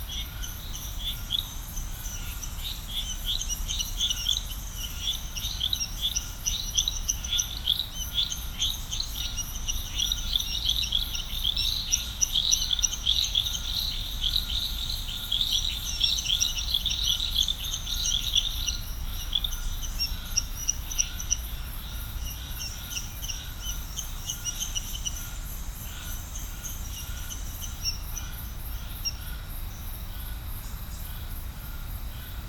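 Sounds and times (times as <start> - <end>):
frog chorus chirping: 0.0 - 32.4
steady pulsing insect buzz: 0.0 - 32.4.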